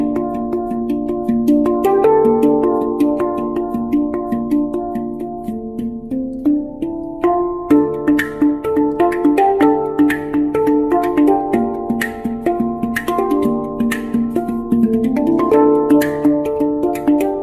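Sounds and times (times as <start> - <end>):
nine-note bronze handpan: 0.0 - 17.4.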